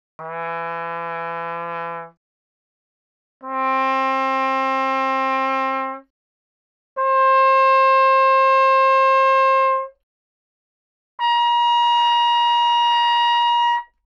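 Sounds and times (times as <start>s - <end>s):
trumpet: 0.2s - 2.2s, 3.4s - 6.1s, 7.0s - 10.0s, 11.2s - 14.0s.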